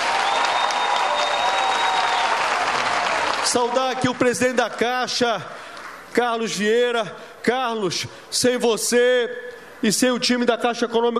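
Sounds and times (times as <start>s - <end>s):
audience applause: 0.0s - 4.0s
speech: 3.5s - 11.1s.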